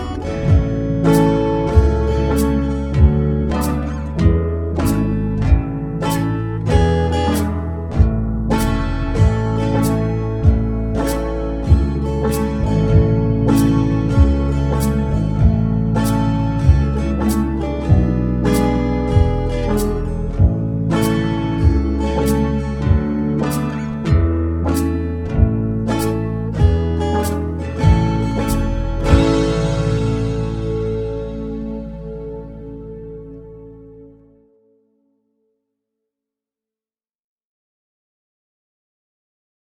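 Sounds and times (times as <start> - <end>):
backing track: 0.0 - 34.5.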